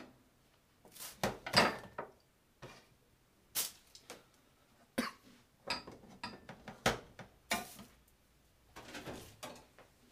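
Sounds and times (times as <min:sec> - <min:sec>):
pots, utensils and dishes clattering while making tomato sauce pasta: 0:01.3 - 0:02.1, 0:05.7 - 0:07.8, 0:08.8 - 0:09.7.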